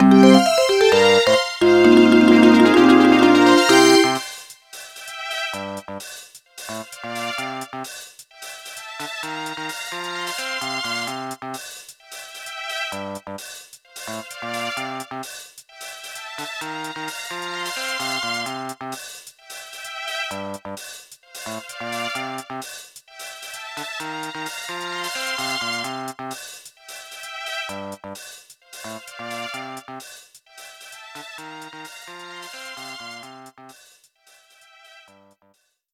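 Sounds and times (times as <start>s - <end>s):
game clear jingle: 0.0s - 4.4s.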